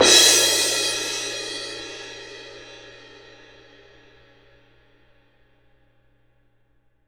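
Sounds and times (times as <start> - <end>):
cymbal: 0.0 - 5.2.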